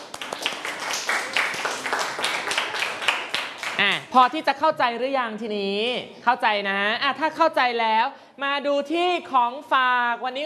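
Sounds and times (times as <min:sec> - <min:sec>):
group of children clapping hands: 0:00.0 - 0:04.1
speech: 0:04.2 - 0:10.4.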